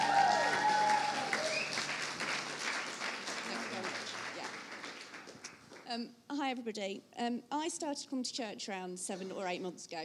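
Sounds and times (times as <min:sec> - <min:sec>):
audience applause at a church gathering: 0:00.0 - 0:05.9
speech: 0:05.9 - 0:10.0.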